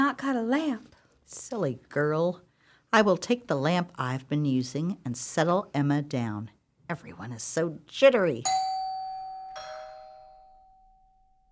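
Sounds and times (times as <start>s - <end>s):
speech: 0.1s - 8.7s
two-tone doorbell chime: 8.5s - 11.5s.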